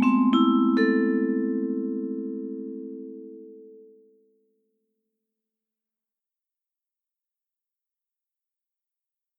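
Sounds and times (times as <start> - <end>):
vibraphone: 0.0 - 3.5.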